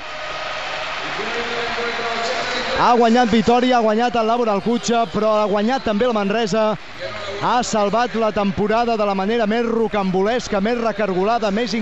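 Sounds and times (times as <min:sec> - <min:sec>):
crowd applauding in basketball arena: 0:00.0 - 0:09.3
speech: 0:01.2 - 0:11.7.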